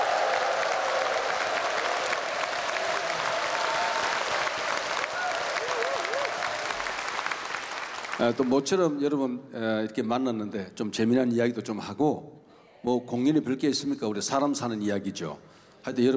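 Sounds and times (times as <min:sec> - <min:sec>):
audience applause: 0:00.0 - 0:08.7
speech: 0:08.2 - 0:16.1.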